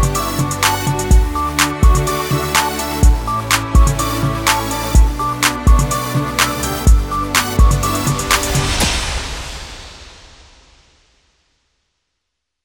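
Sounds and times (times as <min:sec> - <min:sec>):
hip hop music: 0:00.0 - 0:09.4.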